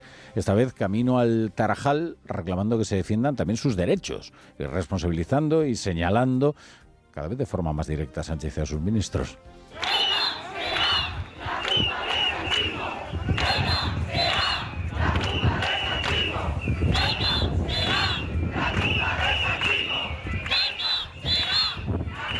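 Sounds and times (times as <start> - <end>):
speech: 0.4 - 9.9
large protest crowd shouting slogans in unison: 9.7 - 22.3.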